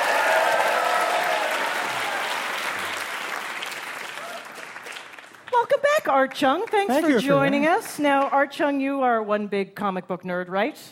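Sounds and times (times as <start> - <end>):
audience applauding a trivia-challenge contestant on a stage show: 0.0 - 8.5
speech: 6.1 - 10.9.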